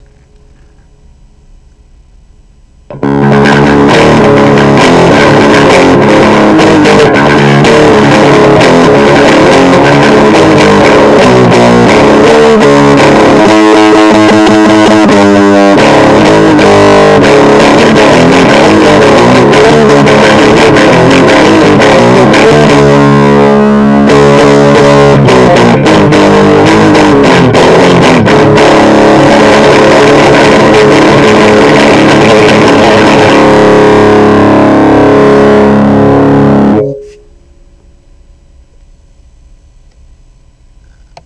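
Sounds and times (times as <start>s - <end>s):
metal music: 2.7s - 37.8s.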